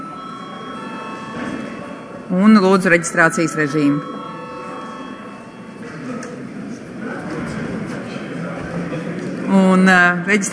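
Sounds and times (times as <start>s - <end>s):
electric session break bell ringing: 0.0s - 6.6s
speech: 2.3s - 4.2s, 9.8s - 10.5s.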